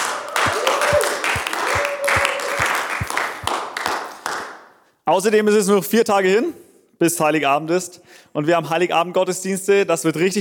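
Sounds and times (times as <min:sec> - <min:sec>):
audience applause: 0:00.0 - 0:04.5
speech: 0:05.1 - 0:10.3.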